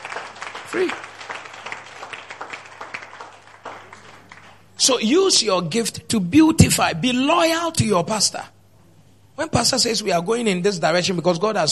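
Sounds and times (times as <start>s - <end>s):
audience clapping: 0.0s - 4.8s
speech: 0.7s - 1.1s, 4.8s - 8.6s, 9.4s - 11.6s.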